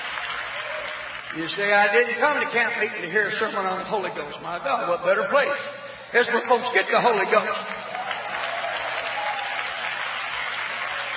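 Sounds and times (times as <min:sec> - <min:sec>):
audience clapping hands: 0:00.0 - 0:02.4, 0:07.4 - 0:11.1
speech: 0:01.3 - 0:07.8.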